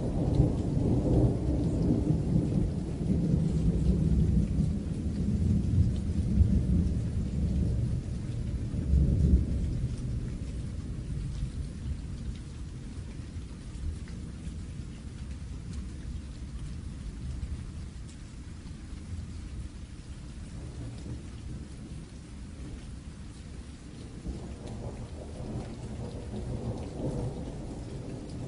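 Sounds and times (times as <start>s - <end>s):
thunder: 0.0s - 11.9s, 24.1s - 28.4s
rain: 0.0s - 28.4s.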